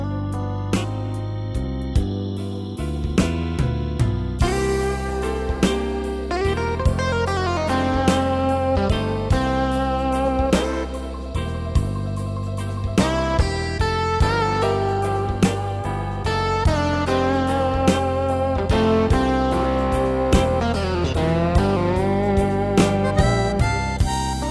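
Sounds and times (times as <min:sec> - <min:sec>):
slow blues keyboard style music: 0:00.0 - 0:24.4.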